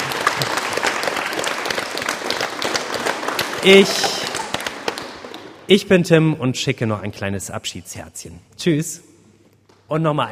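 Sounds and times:
farewell applause from students: 0:00.0 - 0:05.7
speech: 0:03.6 - 0:04.2, 0:05.7 - 0:09.1, 0:09.9 - 0:10.3.

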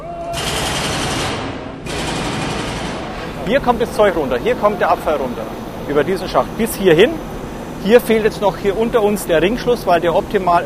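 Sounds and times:
pneumatic rock drill hammering through stone in a tunnel: 0:00.4 - 0:03.4
speech: 0:03.4 - 0:07.2, 0:07.8 - 0:10.6.

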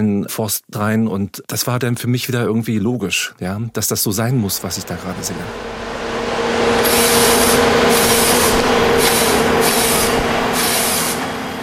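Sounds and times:
speech: 0:00.0 - 0:06.0
forestry harvester droning: 0:04.3 - 0:11.6
harvester saw blade and hydraulic grapple hissing and whining: 0:04.3 - 0:11.6.

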